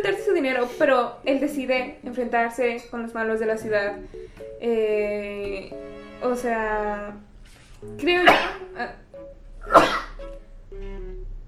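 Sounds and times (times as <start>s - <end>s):
speech: 0.0s - 9.0s
person sneezing: 9.7s - 10.2s.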